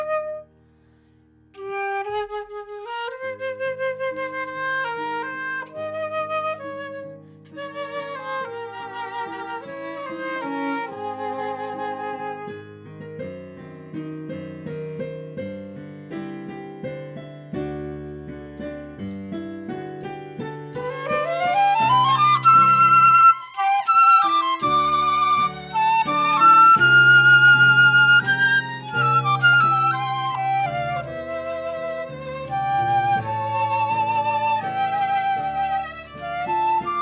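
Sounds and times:
flute: 0.0 - 0.6, 1.6 - 13.0, 20.8 - 37.0.

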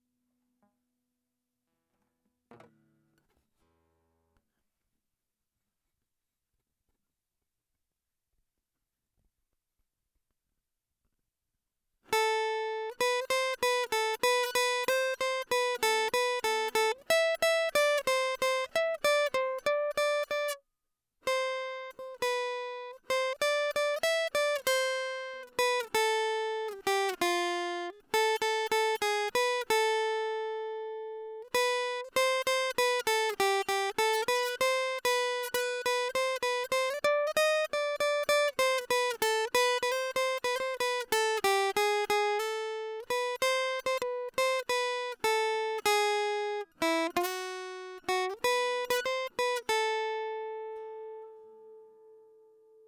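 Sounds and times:
guitar: 12.1 - 20.6, 21.2 - 52.8.

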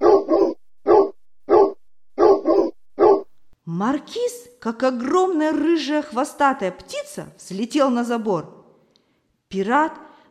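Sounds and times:
dog barking loudly: 0.0 - 3.4
speech: 3.7 - 8.6, 9.5 - 10.0.

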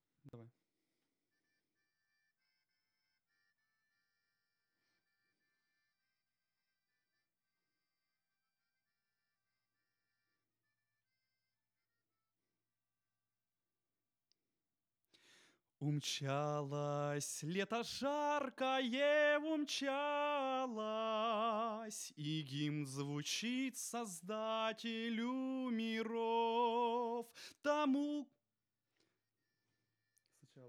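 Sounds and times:
vocals: 15.8 - 28.4.

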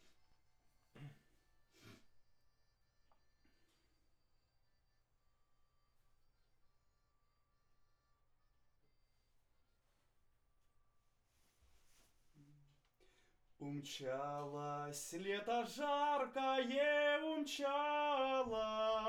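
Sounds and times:
vocal recorded with condenser microphone: 13.6 - 19.0.

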